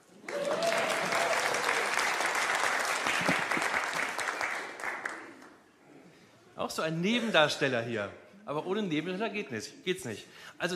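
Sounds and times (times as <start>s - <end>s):
audience applause: 0.0s - 5.6s
speech: 6.7s - 10.7s.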